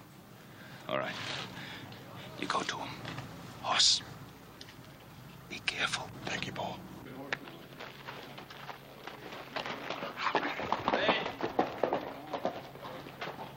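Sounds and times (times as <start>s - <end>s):
speech: 0.9s - 1.6s, 2.4s - 4.2s, 5.5s - 7.4s
hoofbeats of a horse ridden down a street: 7.1s - 13.5s.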